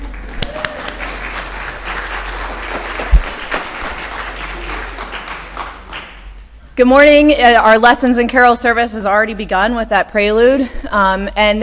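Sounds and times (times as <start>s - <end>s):
audience applause: 0.0s - 6.4s
speech: 6.8s - 11.6s.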